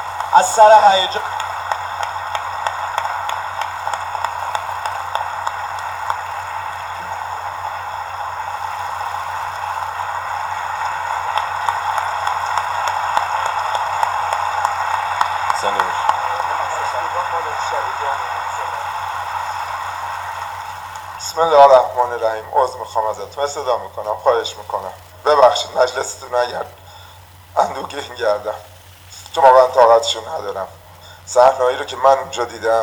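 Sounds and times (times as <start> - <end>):
sustained audience applause: 0.0 - 23.3
speech: 0.3 - 1.4, 22.1 - 26.8, 27.6 - 28.7, 29.3 - 32.8.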